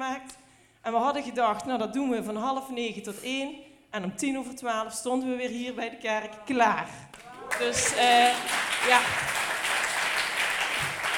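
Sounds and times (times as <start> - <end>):
speech: 0.2 - 9.3
crowd applause: 7.2 - 11.1.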